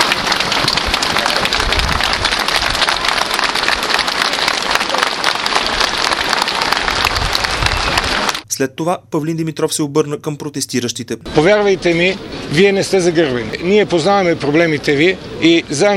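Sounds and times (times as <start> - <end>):
crowd ovation: 0.0 - 8.4
speech: 8.6 - 15.9.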